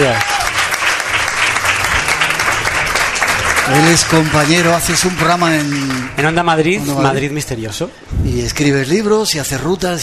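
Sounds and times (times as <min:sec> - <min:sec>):
speech: 0:00.0 - 0:00.3, 0:03.7 - 0:10.0
audience applauding a guest: 0:00.0 - 0:06.6.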